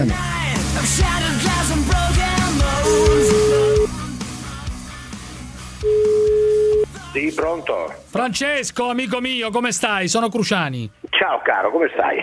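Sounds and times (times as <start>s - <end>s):
dense busy music-like sound: 0.0s - 12.2s
telephone ringback tone: 2.9s - 3.9s, 5.8s - 6.9s
speech: 7.2s - 12.2s.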